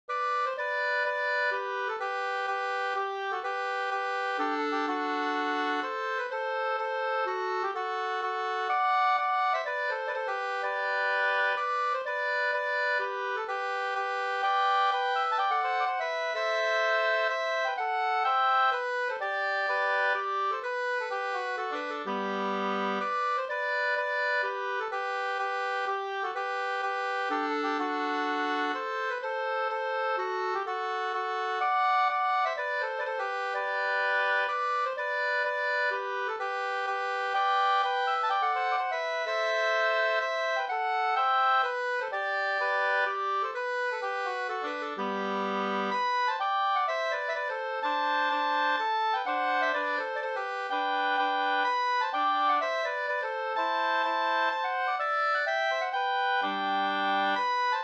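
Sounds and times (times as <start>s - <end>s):
Rorospols folk dance tune: 0.1s - 57.8s.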